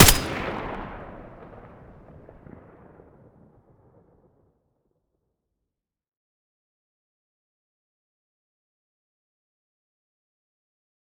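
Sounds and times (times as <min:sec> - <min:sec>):
M4A1 rifle gunshot: 0:00.0 - 0:00.8.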